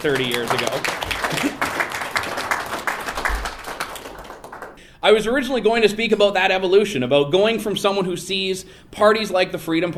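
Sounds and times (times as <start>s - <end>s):
speech: 0.0s - 1.5s, 5.0s - 9.9s
round of applause: 0.0s - 4.8s.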